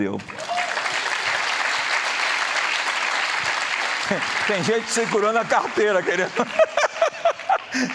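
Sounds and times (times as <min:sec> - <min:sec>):
speech: 0:00.0 - 0:00.5, 0:04.1 - 0:06.8, 0:07.7 - 0:07.9
audience applause: 0:00.0 - 0:07.9
laughter: 0:03.9 - 0:07.9.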